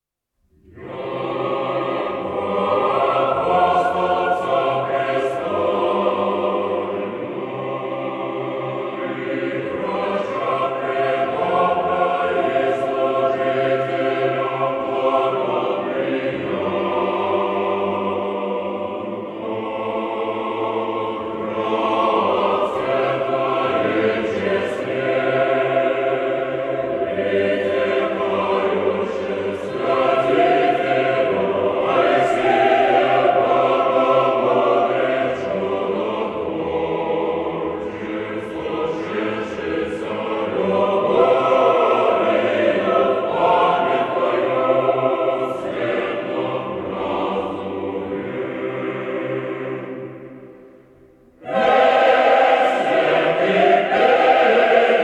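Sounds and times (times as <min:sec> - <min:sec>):
choir singing a troparion: 0:00.6 - 0:50.8, 0:51.4 - 0:55.0.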